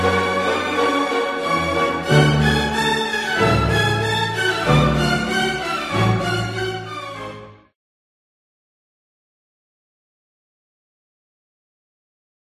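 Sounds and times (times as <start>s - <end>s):
violin concerto with orchestra: 0.0s - 7.7s.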